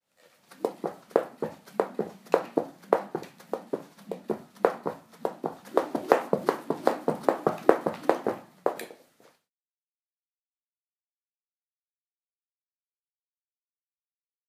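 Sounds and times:
person skipping: 0.2 - 9.4.

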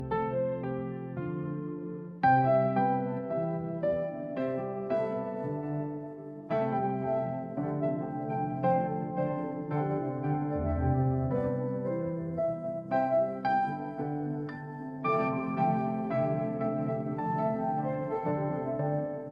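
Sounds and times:
soft piano loop: 0.0 - 19.2.

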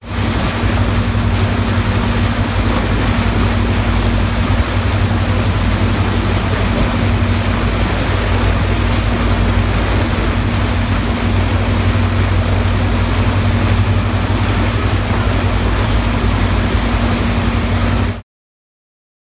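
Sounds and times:
motorboat: 0.0 - 18.2.

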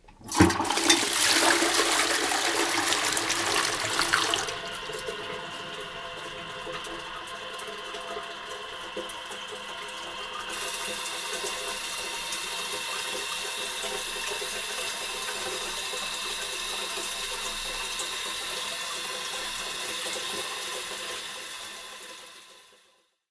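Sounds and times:
toilet: 0.0 - 22.9.

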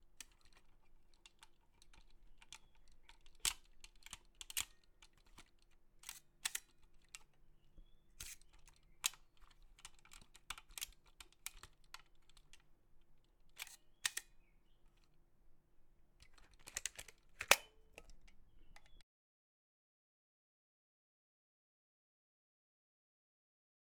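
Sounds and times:
film camera: 0.1 - 7.4, 8.1 - 12.6, 13.5 - 14.4, 16.2 - 19.0.

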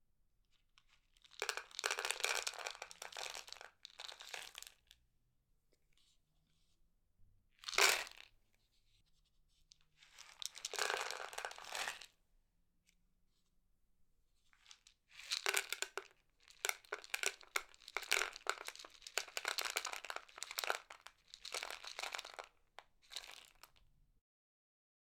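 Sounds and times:
cat food pouring: 1.2 - 4.7, 10.1 - 12.1, 14.6 - 23.8.

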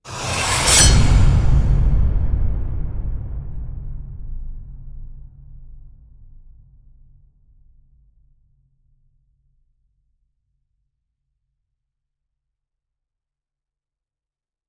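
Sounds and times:
swish: 0.0 - 2.6
deadly blow hit: 0.0 - 4.3.

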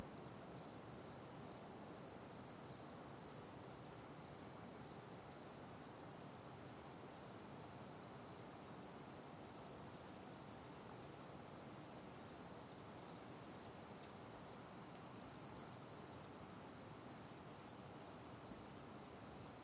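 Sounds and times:
cricket chirping at night: 0.0 - 19.6.

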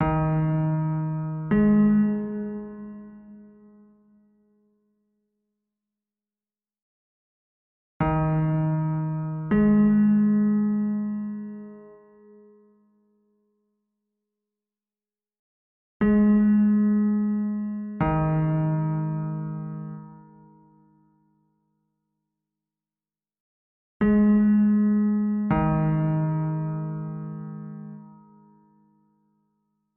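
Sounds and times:
piano: 0.0 - 4.5, 8.0 - 13.3, 16.0 - 21.5, 24.0 - 29.4.

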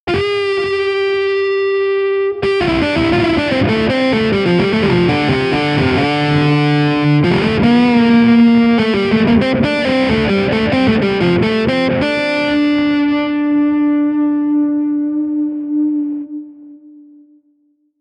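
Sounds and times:
overdriven guitar riff: 0.1 - 17.7.

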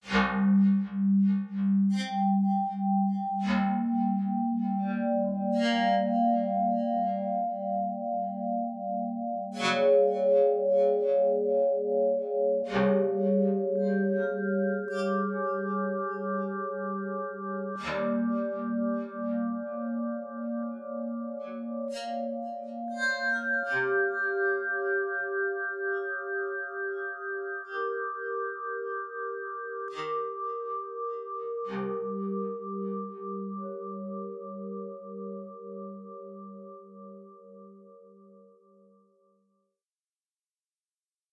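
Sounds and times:
smooth synth pads: 0.0 - 38.7.

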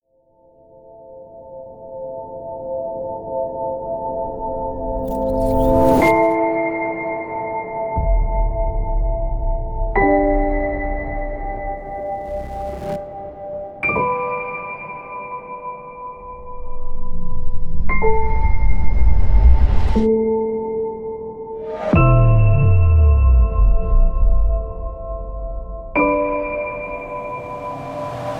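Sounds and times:
cinematic piano trailer score: 0.6 - 28.3
trailer sound effects: 4.9 - 6.4, 10.4 - 13.4, 21.6 - 28.3.

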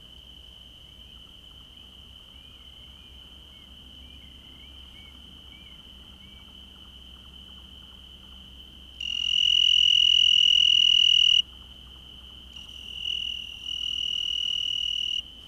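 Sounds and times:
cricket calling at night: 2.3 - 11.5, 12.2 - 15.3.

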